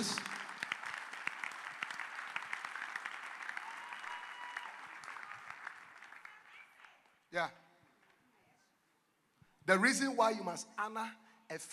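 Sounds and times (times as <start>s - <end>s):
audience clapping hands: 0.0s - 7.3s
speech: 7.3s - 7.6s, 9.7s - 11.7s.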